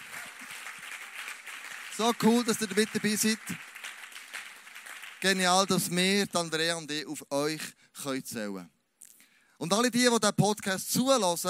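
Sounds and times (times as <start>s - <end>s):
applause: 0.0s - 6.6s
speech: 2.0s - 3.7s, 5.2s - 8.8s, 9.6s - 11.4s.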